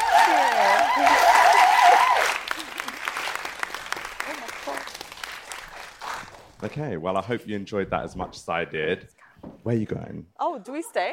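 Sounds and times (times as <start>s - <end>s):
audience applause: 0.0s - 6.6s
speech: 6.6s - 11.1s.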